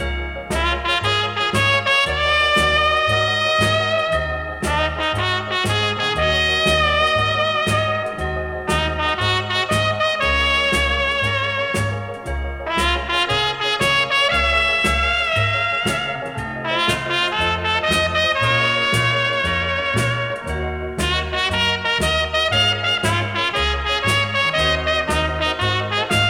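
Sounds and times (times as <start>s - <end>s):
orchestra playing: 0.0s - 26.2s.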